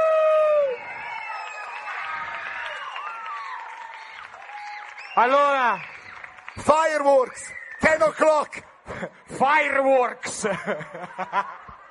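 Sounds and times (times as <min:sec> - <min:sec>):
audience applause: 0:00.4 - 0:08.1
speech: 0:05.2 - 0:05.9, 0:06.6 - 0:11.6
laughter: 0:10.3 - 0:11.8.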